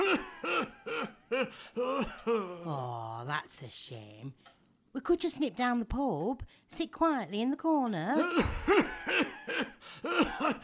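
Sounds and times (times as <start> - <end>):
tickly hoarse cough: 0.0 - 2.4, 8.4 - 10.6
speech: 1.4 - 10.6.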